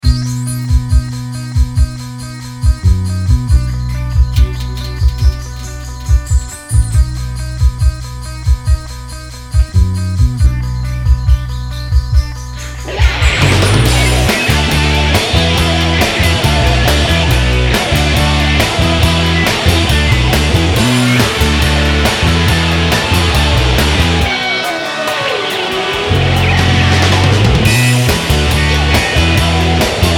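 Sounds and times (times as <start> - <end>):
rock music: 0.0 - 30.1.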